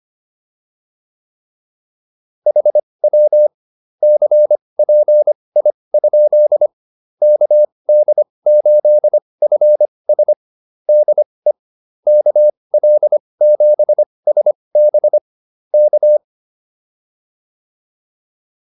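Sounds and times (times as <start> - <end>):
morse code QSO practice: 2.5 - 6.7, 7.2 - 11.3, 12.1 - 16.2.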